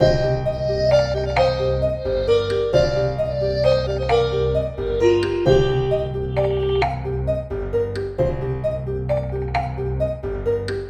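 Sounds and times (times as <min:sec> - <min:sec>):
clay loop: 0:00.0 - 0:10.8.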